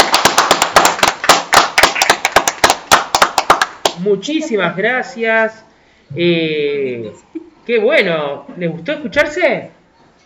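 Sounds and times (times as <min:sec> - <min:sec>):
applause: 0:00.0 - 0:04.0
speech: 0:04.0 - 0:09.8.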